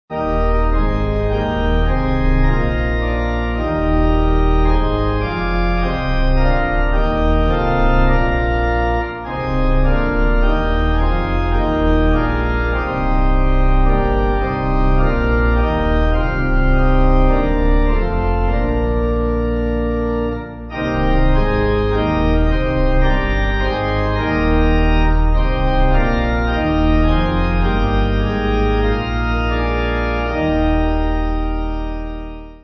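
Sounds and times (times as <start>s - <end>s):
pipe organ: 0.1s - 32.6s.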